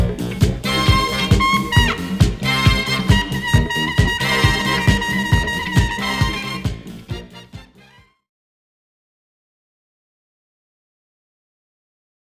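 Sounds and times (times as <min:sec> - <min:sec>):
disco music: 0:00.0 - 0:08.0.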